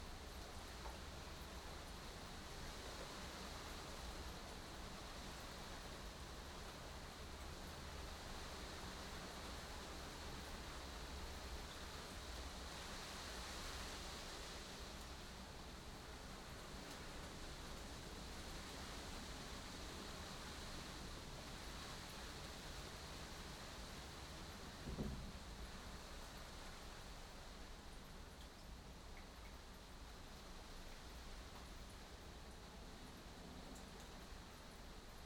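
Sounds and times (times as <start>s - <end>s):
rain on a 10 m2 glass greenhouse heard from inside: 0.0s - 35.2s.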